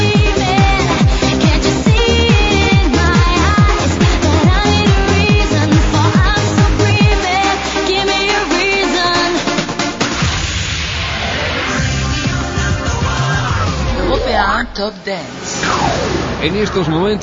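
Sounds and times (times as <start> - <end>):
European top dance music: 0.0 - 17.1.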